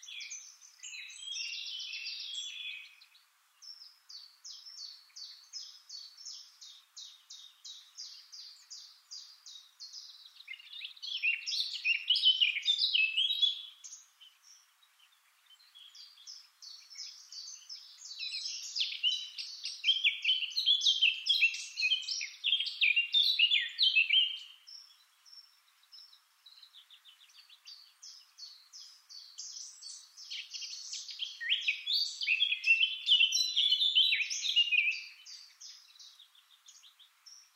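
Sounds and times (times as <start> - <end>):
Eurasian blackcap song: 0.0 - 37.5.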